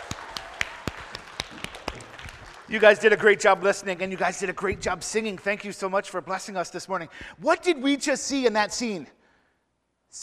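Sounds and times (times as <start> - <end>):
audience applause: 0.0 - 4.6
speech: 2.7 - 9.2.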